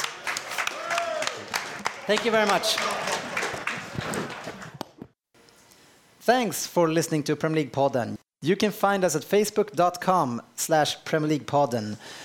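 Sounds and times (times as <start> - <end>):
audience applause: 0.0 - 4.9
speech: 2.1 - 3.2, 6.3 - 12.2.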